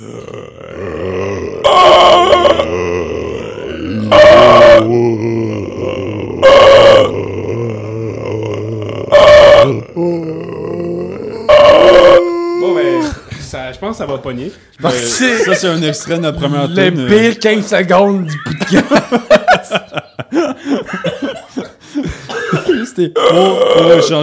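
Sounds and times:
speech: 0.0 - 0.6, 13.9 - 19.4, 23.0 - 24.2
deep guttural grunting from the throat: 0.0 - 13.3, 23.2 - 24.2
laughter: 14.8 - 16.9, 18.1 - 22.9.

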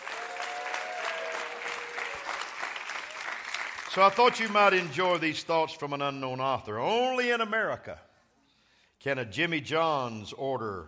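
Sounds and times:
audience clapping and cheering: 0.0 - 5.6
speech: 3.9 - 8.1, 9.0 - 10.8.

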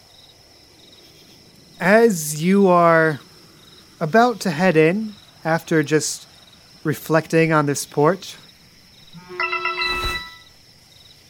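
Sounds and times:
speech: 1.8 - 3.3, 4.0 - 8.4
phone text message notification chime: 9.2 - 10.4.

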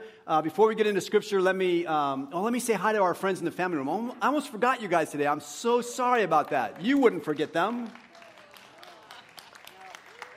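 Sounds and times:
speech: 0.3 - 8.0
scattered applause from audience: 6.3 - 10.3.

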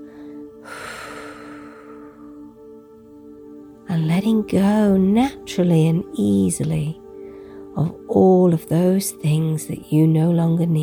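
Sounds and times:
long breathy exhale: 0.0 - 2.4
speech: 4.0 - 7.0, 7.8 - 10.8.

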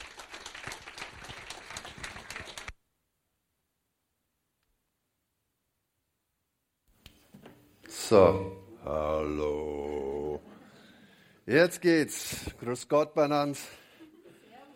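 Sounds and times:
audience applause: 0.0 - 2.8
speech: 8.1 - 9.6, 11.5 - 13.8.

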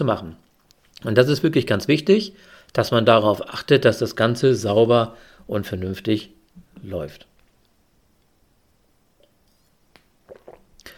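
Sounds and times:
speech: 0.0 - 7.3
faint hiss: 0.0 - 10.9
person taking a quick sip of a drink: 10.2 - 10.9.

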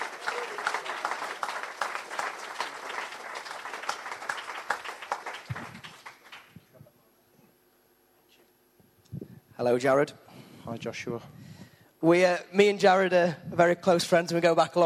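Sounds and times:
audience applause: 0.0 - 6.7
speech: 9.6 - 11.4, 12.0 - 14.8.

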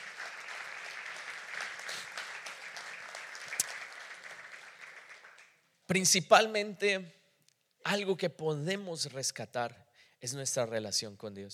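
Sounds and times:
audience applause: 0.0 - 5.6
speech: 5.9 - 7.2, 7.8 - 11.5.

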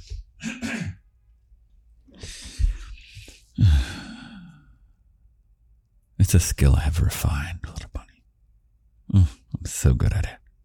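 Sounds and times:
person coughing: 0.4 - 1.1
speech: 6.3 - 7.7, 9.1 - 10.4.

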